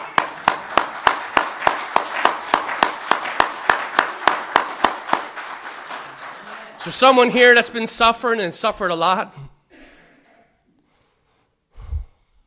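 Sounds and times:
crowd applause: 0.0 - 7.8
steady rhythmic clapping: 0.0 - 7.9
speech: 6.8 - 9.5.

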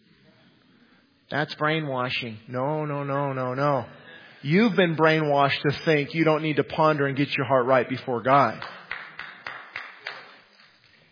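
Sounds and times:
quiet hum: 0.0 - 11.0
speech: 1.3 - 8.8
scattered hand claps from an audience in a reverberant room: 8.6 - 10.7.

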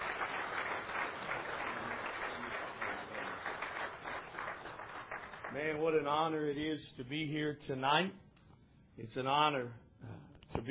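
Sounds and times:
audience applause welcoming a guest speaker at an evening gathering: 0.0 - 5.8
speech: 5.5 - 8.2, 9.0 - 9.8, 10.5 - 10.7.

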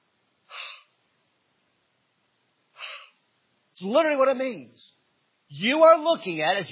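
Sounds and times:
preacher drawing a deep breath: 0.5 - 1.0, 2.8 - 3.2
speech: 3.8 - 4.9, 5.5 - 6.7.

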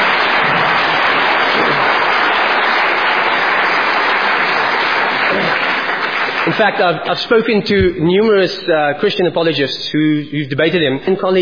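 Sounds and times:
audience applause: 0.0 - 7.0
speech: 6.6 - 11.3.

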